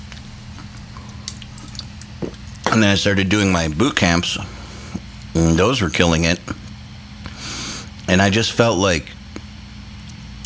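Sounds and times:
person taking a sip of drink: 0.6s - 2.0s
speech: 2.8s - 4.6s, 5.3s - 6.6s, 8.1s - 9.2s.

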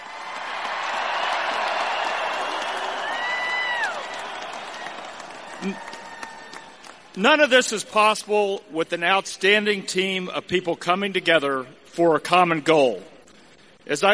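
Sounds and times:
crowd applauding: 0.0s - 7.2s
speech: 5.6s - 6.0s, 7.2s - 13.1s, 13.8s - 14.1s.

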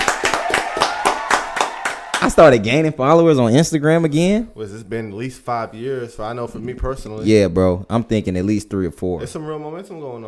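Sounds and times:
small group of people clapping: 0.0s - 2.7s
speech: 2.3s - 10.2s.

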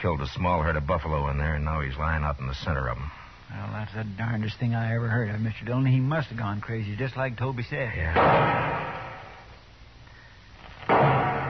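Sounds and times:
speech: 0.0s - 9.0s
rifle shot fired as a signal for help: 8.2s - 9.4s, 10.9s - 11.4s.

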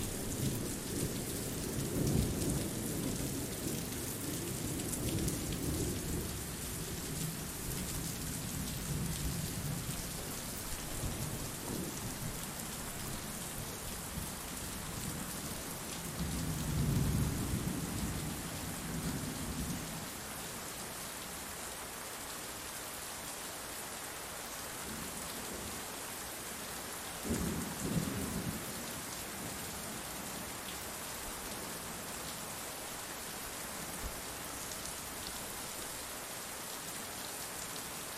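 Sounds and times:
steady rain: 0.0s - 38.1s.

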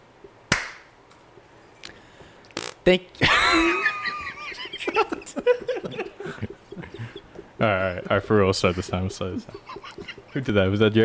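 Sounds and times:
hand clap to sync recording: 0.5s - 0.9s
speech: 2.8s - 3.9s, 7.6s - 11.0s
laughter: 3.2s - 10.8s.

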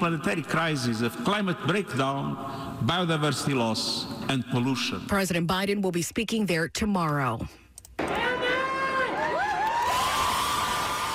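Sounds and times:
speech: 0.0s - 7.6s
supporters cheering outside a Baltimore court: 8.0s - 11.1s.

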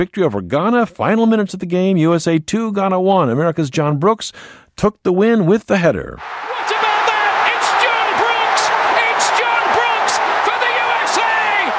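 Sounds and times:
speech: 0.0s - 6.8s
soccer fans cheering a victory: 6.2s - 11.7s
whoops and high shouts: 6.2s - 11.7s.

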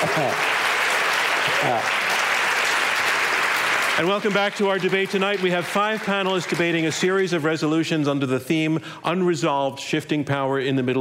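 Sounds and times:
speech: 0.0s - 0.6s, 1.5s - 2.0s, 4.0s - 11.0s
crowd applause: 0.0s - 7.3s.

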